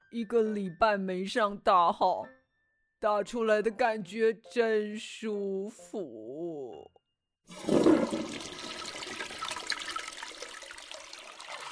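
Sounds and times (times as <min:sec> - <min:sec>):
speech: 0:00.1 - 0:02.4, 0:03.0 - 0:08.6
toilet flushing after its button is pressed: 0:07.5 - 0:11.7.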